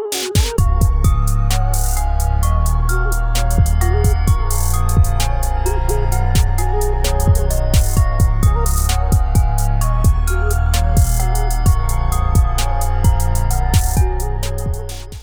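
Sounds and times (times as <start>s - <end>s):
trap beat: 0.1s - 15.2s.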